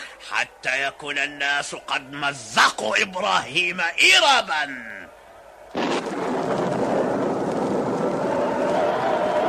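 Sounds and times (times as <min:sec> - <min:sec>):
speech: 0:00.3 - 0:05.1
Tower of Babel collapsing onto the crowd: 0:05.7 - 0:09.3.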